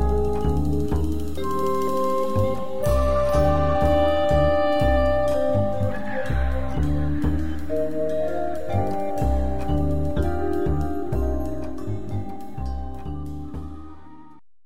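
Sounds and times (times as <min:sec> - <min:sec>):
trance chimes: 0:00.2 - 0:14.3.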